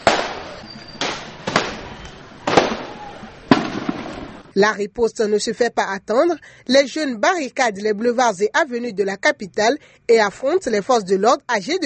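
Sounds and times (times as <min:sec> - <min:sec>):
detonations during street protest clashes: 0:00.0 - 0:04.6
speech: 0:04.6 - 0:11.8.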